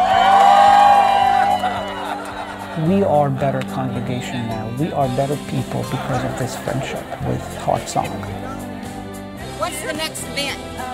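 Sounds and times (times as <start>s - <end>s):
crowd cheering and whooping: 0.0s - 3.1s
laughter: 1.1s - 8.6s
speech: 2.8s - 8.7s, 9.6s - 10.9s.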